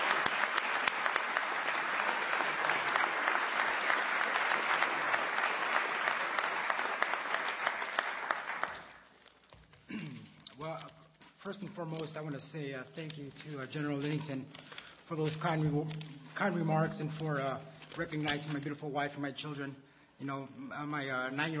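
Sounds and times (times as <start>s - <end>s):
audience applause: 0.0s - 9.1s
speech: 11.5s - 21.5s.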